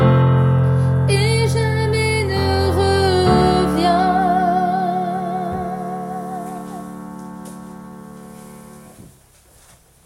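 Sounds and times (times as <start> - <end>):
piano: 0.0 - 9.3
chant refrain: 2.4 - 7.2.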